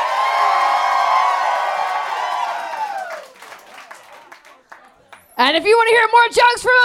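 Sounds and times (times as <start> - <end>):
audience cheering and clapping: 0.0 - 5.4
speech: 5.4 - 6.8.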